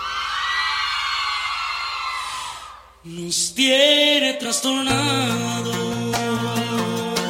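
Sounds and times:
women shouting and whooping: 0.0s - 2.8s
speech: 3.0s - 7.1s.

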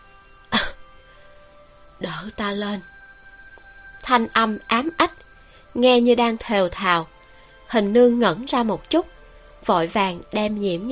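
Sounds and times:
weak light coughs: 0.5s - 0.8s
speech: 2.0s - 2.9s, 4.0s - 10.9s.

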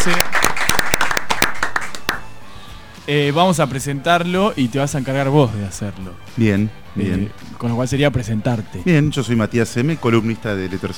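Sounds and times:
speech: 0.0s - 0.4s, 3.1s - 10.9s
scattered hand claps welcoming a columnist in a radio studio: 0.0s - 2.4s.

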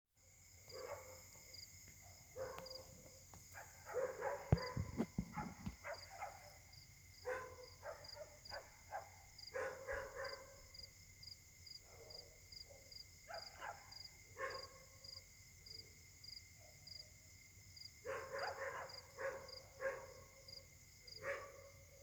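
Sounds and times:
dogs barking: 0.7s - 1.3s, 2.1s - 3.0s, 3.6s - 6.6s, 7.2s - 10.6s, 11.9s - 14.8s, 18.1s - 20.4s, 21.2s - 21.8s.

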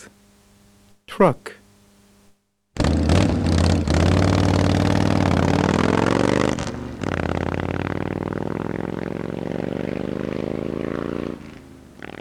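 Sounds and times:
speech: 1.2s - 1.6s
motorbike engine revving: 2.8s - 12.1s.

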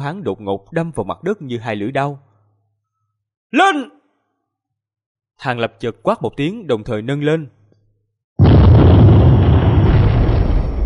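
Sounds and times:
speech: 0.0s - 2.3s, 3.5s - 4.0s, 5.4s - 7.6s
explosion echoing through a mountain valley as the ground cracks open: 8.4s - 10.8s.

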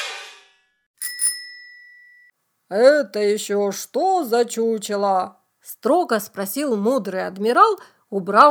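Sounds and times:
bicycle bell ringing: 1.0s - 2.3s
speech: 2.7s - 8.4s.

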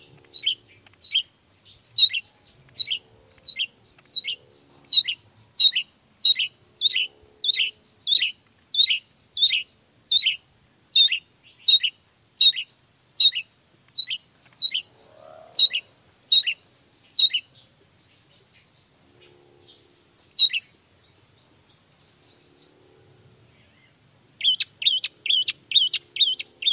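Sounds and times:
long-tailed shrike chattering song: 0.0s - 17.7s, 19.7s - 20.7s, 24.4s - 26.7s.

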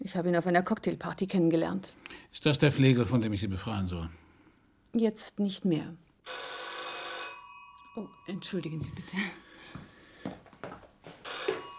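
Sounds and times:
speech: 0.1s - 4.2s, 4.9s - 6.5s, 8.0s - 10.4s
telephone ringing: 6.2s - 9.1s, 11.2s - 11.7s.

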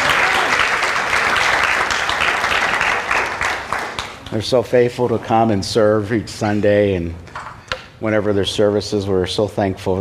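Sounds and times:
crowd applause: 0.0s - 4.3s
speech: 4.3s - 7.2s, 8.0s - 9.9s.

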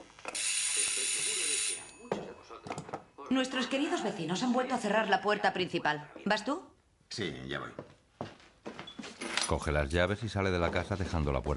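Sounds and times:
intercom button being pressed: 0.3s - 2.0s
speech: 3.3s - 7.8s, 9.5s - 11.5s.

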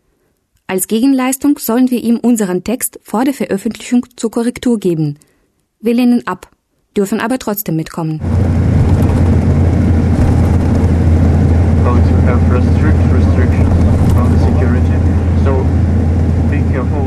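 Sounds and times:
speech: 0.7s - 9.1s
bus driving heard from inside: 8.2s - 17.0s.

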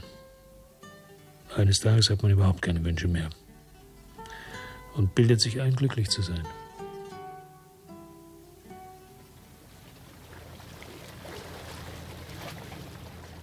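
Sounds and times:
speech: 1.5s - 3.4s, 5.0s - 6.6s
small boat motor droning: 8.5s - 13.4s
rush of water and wind as the boat moves toward Marseille: 9.3s - 13.4s.

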